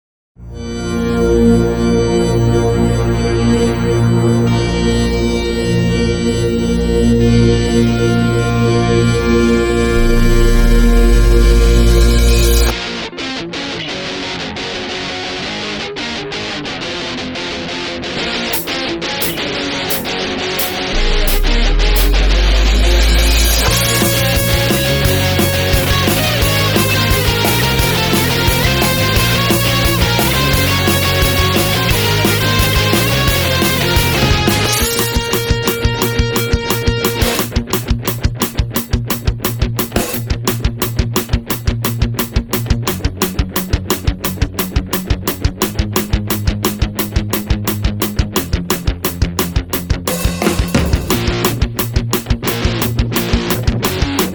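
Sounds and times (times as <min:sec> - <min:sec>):
Eurobeat instrumental: 0:00.4 - 0:12.9, 0:18.5 - 0:54.3.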